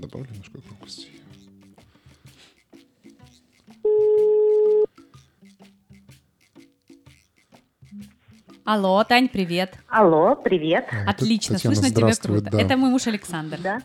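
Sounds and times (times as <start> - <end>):
speech: 0.0 - 1.4, 8.7 - 13.8
telephone ringback tone: 3.9 - 4.9.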